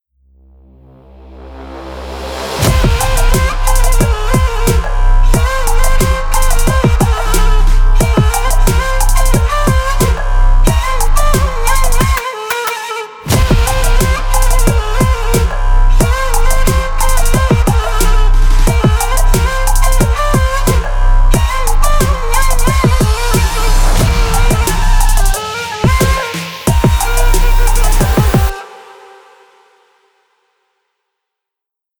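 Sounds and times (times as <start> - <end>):
trap beat: 2.6 - 28.6.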